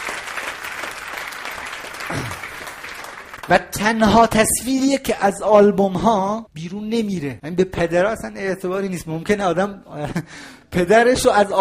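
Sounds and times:
audience applauding: 0:00.0 - 0:03.6
speech: 0:03.5 - 0:11.5.

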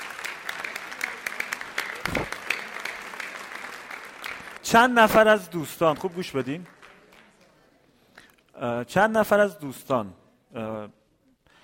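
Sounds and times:
crowd clapping: 0:00.0 - 0:07.7
speech: 0:04.7 - 0:06.8, 0:08.6 - 0:11.0.

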